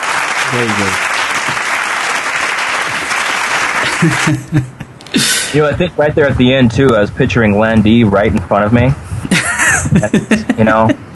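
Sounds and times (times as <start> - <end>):
audience applause: 0.0 - 4.7
speech: 0.5 - 1.1, 4.0 - 9.0, 9.9 - 10.9
laughter: 3.7 - 6.6, 9.2 - 11.0.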